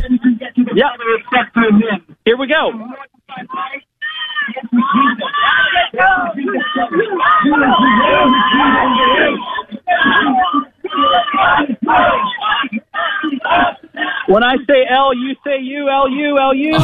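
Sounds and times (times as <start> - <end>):
laughter: 0.0 - 2.0, 4.3 - 15.3
speech: 0.8 - 3.2, 14.3 - 16.8
crowd of students chanting: 3.5 - 14.6.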